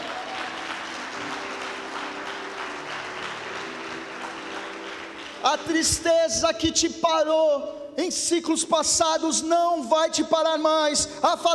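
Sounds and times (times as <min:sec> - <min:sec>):
audience applause: 0:00.0 - 0:05.8
speech: 0:05.4 - 0:11.5.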